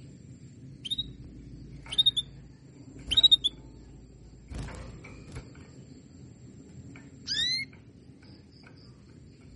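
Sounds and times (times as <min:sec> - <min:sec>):
Belgian canary calls: 0:01.9 - 0:02.4, 0:03.1 - 0:03.6, 0:07.2 - 0:07.7.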